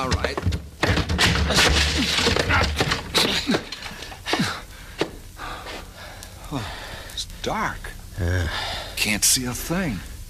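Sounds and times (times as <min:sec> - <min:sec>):
door being broken down by shoulder: 0:00.0 - 0:04.2
splintering wood: 0:00.0 - 0:05.2
wood creaking: 0:00.0 - 0:05.2
speech: 0:07.5 - 0:10.1.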